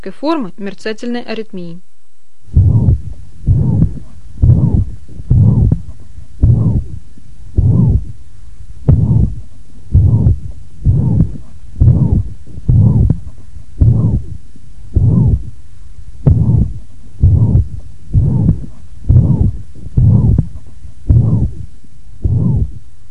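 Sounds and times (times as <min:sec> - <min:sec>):
speech: 0:00.0 - 0:01.9
systolic heart murmur, mitral valve regurgitation: 0:02.5 - 0:08.2, 0:08.8 - 0:15.6, 0:16.2 - 0:22.8.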